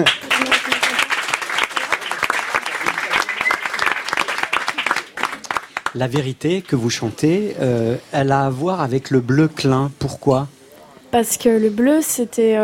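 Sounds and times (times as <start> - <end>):
speech: 0.0 - 0.3, 6.0 - 12.6
audience applauding: 0.0 - 6.8.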